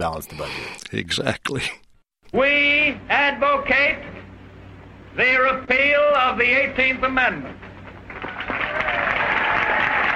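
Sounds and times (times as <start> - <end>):
speech: 0.0 - 4.1, 5.2 - 7.6
audience applause in archival recording: 8.1 - 10.1.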